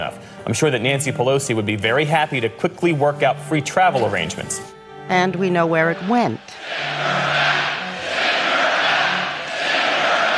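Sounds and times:
speech: 0:00.5 - 0:07.1
crowd at a political rally chanting: 0:05.8 - 0:10.3.

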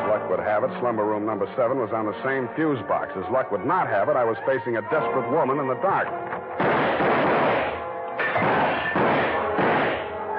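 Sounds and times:
speech: 0:00.2 - 0:06.4
repeated gunshots from a pistol: 0:06.5 - 0:10.2.

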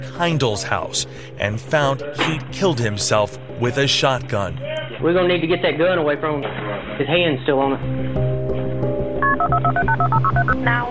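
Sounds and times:
speech: 0:00.0 - 0:08.2, 0:09.8 - 0:10.8
telephone keypad dialing 911: 0:09.2 - 0:10.6.

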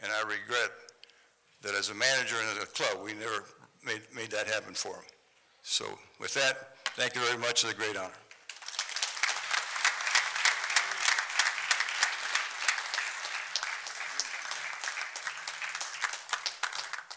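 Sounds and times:
speech: 0:00.0 - 0:00.9, 0:01.6 - 0:08.2
audience applause: 0:08.5 - 0:17.1.

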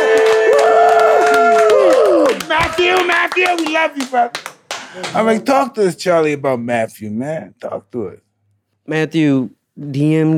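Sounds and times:
crowd cheering and shouting: 0:00.0 - 0:02.8
crowd applauding: 0:00.0 - 0:05.3
speech: 0:02.8 - 0:08.2, 0:08.9 - 0:10.3.

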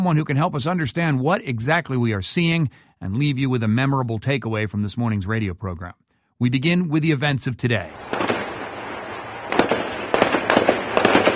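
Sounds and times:
speech: 0:00.0 - 0:08.2
live machine gun fire at night: 0:08.0 - 0:11.3.

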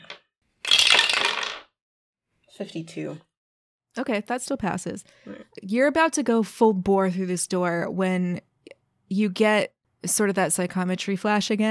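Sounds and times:
dice clattering: 0:00.0 - 0:01.7
speech: 0:02.6 - 0:03.3, 0:04.0 - 0:08.5, 0:09.1 - 0:11.7.

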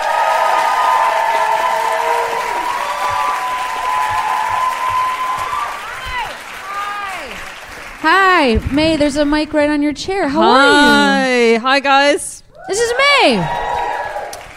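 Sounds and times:
audience cheers and whoops: 0:00.0 - 0:07.4, 0:12.5 - 0:14.5
audience applause: 0:00.0 - 0:09.0, 0:13.0 - 0:14.5
speech: 0:08.0 - 0:13.7.

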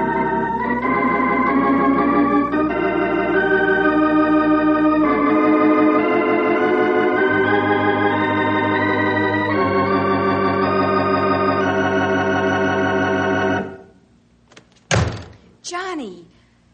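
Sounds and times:
organ-like music: 0:00.0 - 0:14.0
door slamming shut: 0:14.8 - 0:15.5
person speaking: 0:15.6 - 0:16.4.

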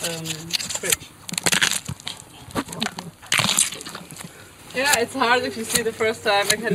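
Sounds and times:
speech: 0:00.1 - 0:01.1, 0:04.8 - 0:06.7
bones breaking while cutting off carcass legs: 0:00.2 - 0:04.3.

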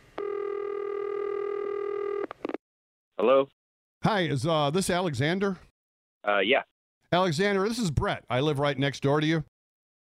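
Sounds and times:
telephone dialing tone: 0:00.2 - 0:02.6
speech: 0:03.2 - 0:03.5, 0:04.1 - 0:09.5.

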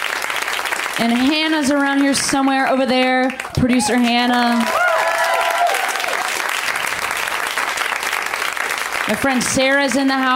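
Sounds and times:
audience applause: 0:00.0 - 0:10.3
speech: 0:01.0 - 0:04.8, 0:09.1 - 0:10.3
audience whoops: 0:04.6 - 0:06.5.

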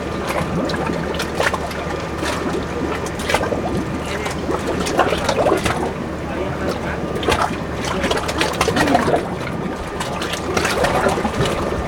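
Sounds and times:
small waves lapping at a dock: 0:00.0 - 0:11.8
low rumble: 0:09.6 - 0:11.8.

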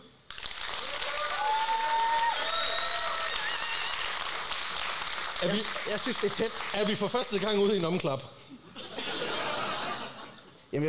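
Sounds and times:
audience applause: 0:00.3 - 0:07.9
speech: 0:05.4 - 0:08.5
laughter: 0:08.7 - 0:10.6.

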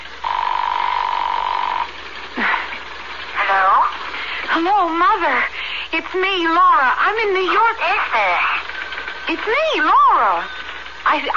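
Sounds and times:
telephone ring tone on the line: 0:00.0 - 0:03.7, 0:08.1 - 0:11.3
speech: 0:04.6 - 0:08.6, 0:09.3 - 0:11.3.

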